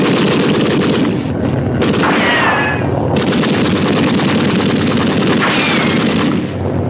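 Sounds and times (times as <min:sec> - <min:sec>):
sustained dense rapid gunfire: 0:00.0 - 0:06.7
whining ricochets: 0:01.9 - 0:03.0, 0:05.3 - 0:06.6.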